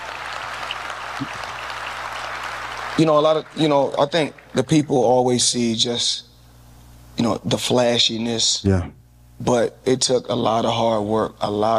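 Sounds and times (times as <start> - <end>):
audience clapping: 0.0 - 5.7
speech: 1.2 - 1.5, 3.0 - 6.3, 7.2 - 11.7
low steady hum: 3.0 - 11.7.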